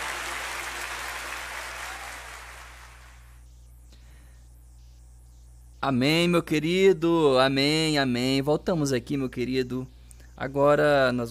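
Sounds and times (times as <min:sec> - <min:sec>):
audience applauding: 0:00.0 - 0:03.2
speech: 0:05.8 - 0:11.2.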